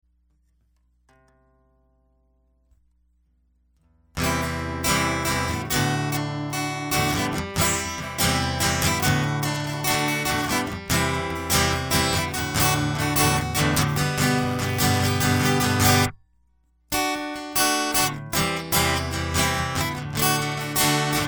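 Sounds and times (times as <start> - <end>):
guitar: 3.9 - 16.2, 16.9 - 21.2.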